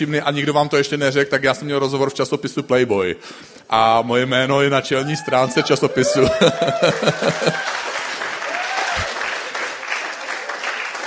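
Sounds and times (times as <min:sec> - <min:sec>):
speech: 0:00.0 - 0:07.8
laughter: 0:05.8 - 0:09.6
audience applause in a church: 0:05.9 - 0:11.0.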